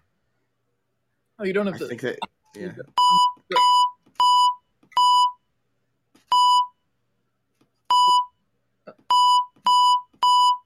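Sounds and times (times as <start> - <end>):
speech: 1.4 - 3.9
Morse code beeps: 3.0 - 5.4, 6.3 - 6.8, 7.9 - 8.3, 9.1 - 10.6.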